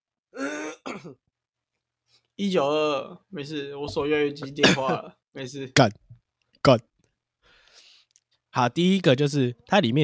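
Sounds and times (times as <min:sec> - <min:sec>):
person coughing: 0:00.4 - 0:01.2, 0:04.4 - 0:05.1
throat clearing: 0:00.4 - 0:01.2
speech: 0:01.0 - 0:01.3, 0:02.1 - 0:06.0, 0:06.6 - 0:06.9, 0:08.6 - 0:10.0.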